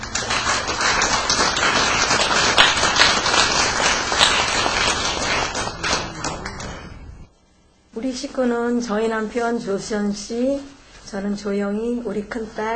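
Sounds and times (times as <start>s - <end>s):
crowd clapping: 0.0s - 7.0s
speech: 8.3s - 12.7s.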